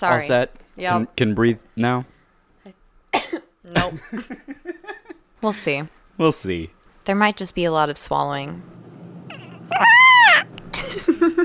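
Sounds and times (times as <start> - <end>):
speech: 0.0 - 2.8, 3.6 - 4.6, 5.4 - 8.8, 9.7 - 11.4
baby crying: 9.3 - 10.5.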